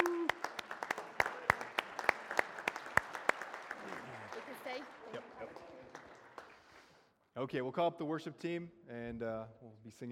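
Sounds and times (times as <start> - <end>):
church congregation scattered hand claps: 0.0 - 7.0
speech: 7.4 - 10.1.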